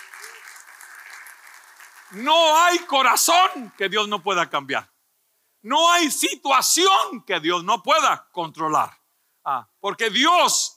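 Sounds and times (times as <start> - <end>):
audience applause: 0.0 - 4.3
speech: 2.1 - 4.9, 5.6 - 10.7.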